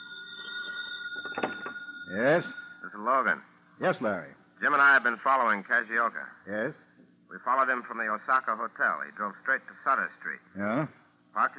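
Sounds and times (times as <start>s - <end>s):
telephone ringing: 0.0s - 3.3s
speech: 2.1s - 11.5s.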